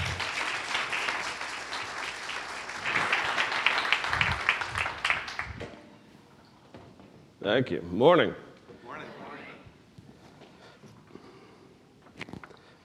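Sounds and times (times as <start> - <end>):
church fellowship congregation applauding to welcome a speaker: 0.0 - 5.7
speech: 7.5 - 8.5.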